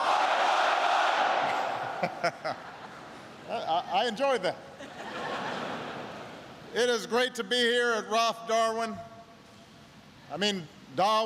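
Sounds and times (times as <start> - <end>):
crowd chanting a cheer response: 0.0 - 1.8
laughter: 1.6 - 3.7, 4.7 - 6.5
speech: 2.0 - 2.7, 3.5 - 4.7, 6.7 - 9.1, 10.3 - 11.2.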